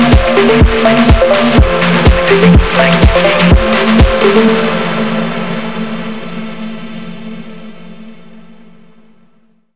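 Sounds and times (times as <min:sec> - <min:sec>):
Russian phonk music: 0:00.0 - 0:07.7.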